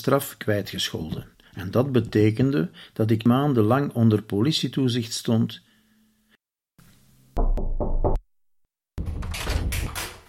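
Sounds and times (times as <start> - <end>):
speech: 0.0 - 5.7
knocking on an office door: 7.5 - 8.2, 9.0 - 10.2.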